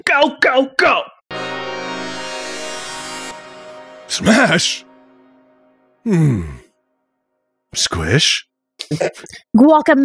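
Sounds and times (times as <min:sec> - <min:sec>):
speech: 0:00.0 - 0:01.2, 0:04.1 - 0:04.9, 0:06.0 - 0:06.6, 0:07.7 - 0:10.0
air horn blast: 0:01.3 - 0:07.1.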